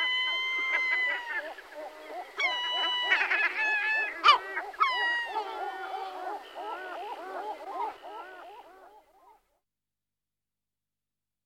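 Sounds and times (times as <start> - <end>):
European herring gull Larus argentatus laughing calls: 0.0 - 9.1.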